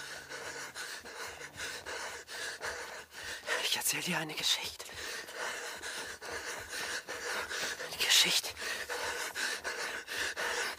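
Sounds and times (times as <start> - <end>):
heavy rapid panting with harsh breathy gasps: 0.0 - 10.7
speech: 3.8 - 5.0, 8.2 - 8.6.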